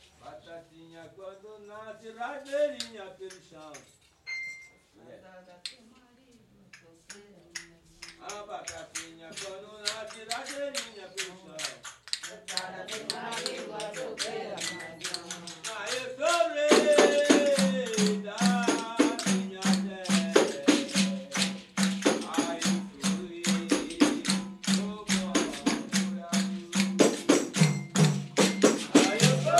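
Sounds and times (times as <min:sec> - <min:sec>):
baiao music: 0:07.9 - 0:29.5.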